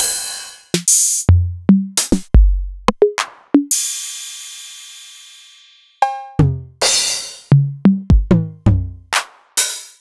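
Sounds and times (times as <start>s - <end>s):
Novation Drumstation drum machine: 0.0s - 4.1s, 6.0s - 9.9s.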